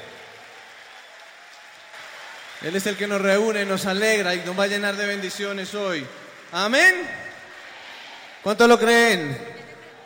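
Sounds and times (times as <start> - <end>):
audience applause: 0.0 - 10.0
speech: 2.6 - 7.2, 8.4 - 9.6.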